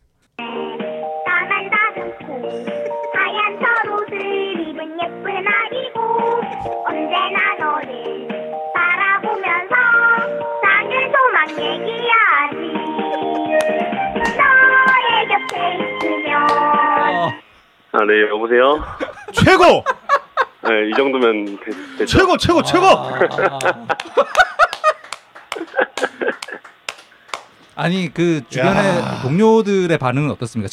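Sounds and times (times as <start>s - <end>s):
phone ringback tone playing a children's song: 0.4s - 17.2s
laughter: 2.6s - 4.4s, 12.8s - 13.9s, 18.8s - 26.8s, 28.6s - 29.4s
speech: 18.0s - 20.0s, 20.7s - 24.4s, 27.8s - 30.7s.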